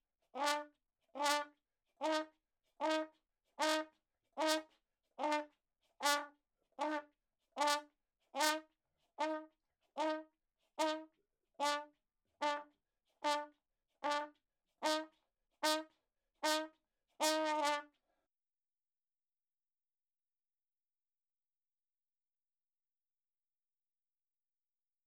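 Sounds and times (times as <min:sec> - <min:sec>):
ragtime trumpet: 0:00.4 - 0:18.0.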